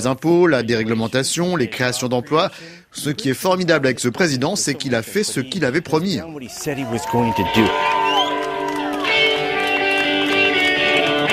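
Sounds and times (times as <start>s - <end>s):
speech: 0.0s - 8.0s
enthusiastic rally crowd cheering: 6.4s - 11.3s.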